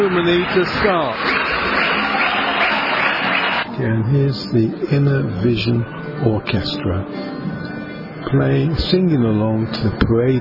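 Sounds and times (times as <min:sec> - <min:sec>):
speech: 0:00.0 - 0:01.8, 0:03.8 - 0:07.6, 0:08.3 - 0:10.3
large crowd clapping: 0:00.0 - 0:03.7.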